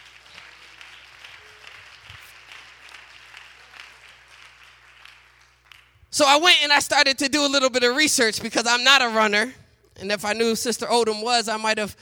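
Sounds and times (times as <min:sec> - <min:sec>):
audience applause: 0:00.0 - 0:05.9
speech: 0:06.2 - 0:12.0.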